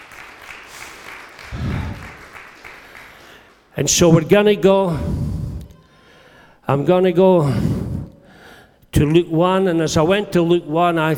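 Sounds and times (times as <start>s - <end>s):
audience applauding: 0.0s - 3.6s
speech: 3.8s - 5.2s, 6.7s - 7.7s, 8.9s - 11.1s.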